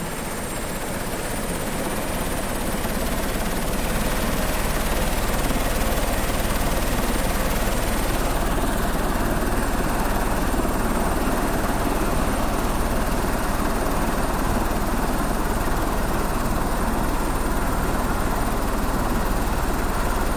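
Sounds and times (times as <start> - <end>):
2004 Eurocopter EC130 helicopter starting up: 0.0 - 20.3.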